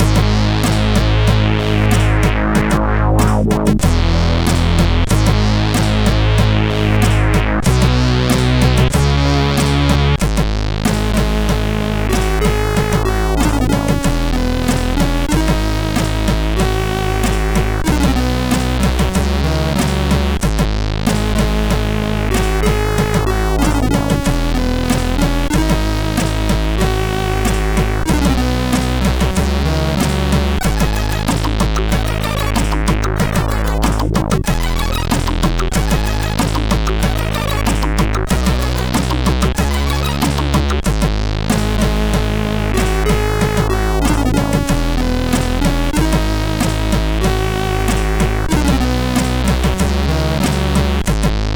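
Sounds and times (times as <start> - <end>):
SID CSG8580 chip music: 0.0 - 51.2.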